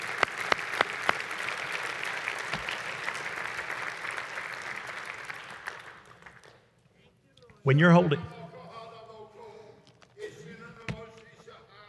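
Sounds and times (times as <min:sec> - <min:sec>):
audience clapping: 0:00.0 - 0:06.7
speech: 0:07.6 - 0:08.4.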